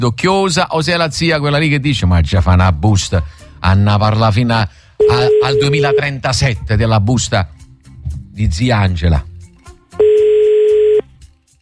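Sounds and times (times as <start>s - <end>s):
speech: 0.0s - 7.6s, 8.4s - 9.3s
outgoing telephone call tone: 5.0s - 6.1s, 10.0s - 11.1s.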